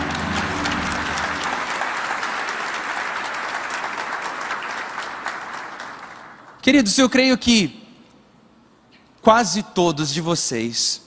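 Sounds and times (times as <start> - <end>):
audience applauding: 0.0 - 6.6
speech: 6.7 - 7.8, 9.2 - 11.0.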